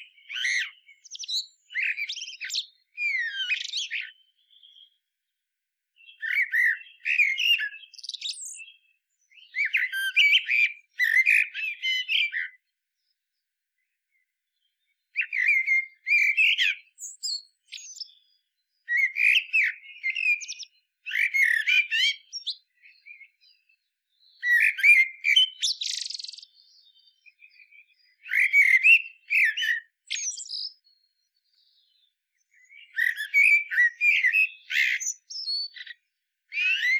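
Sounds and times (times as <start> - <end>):
common blackbird singing: 0.0 - 5.1, 6.0 - 36.9.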